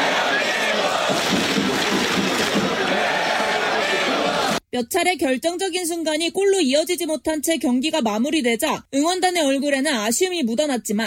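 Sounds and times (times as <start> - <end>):
large outdoor crowd cheering and shouting: 0.0 - 4.6
speech: 4.8 - 11.0.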